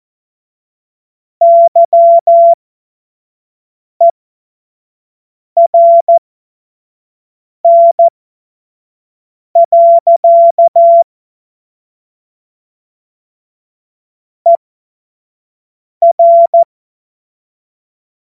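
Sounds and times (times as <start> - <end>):
CW Morse code beeps: 1.4 - 2.6, 5.6 - 6.2, 7.7 - 8.1, 9.6 - 11.0, 16.0 - 16.7.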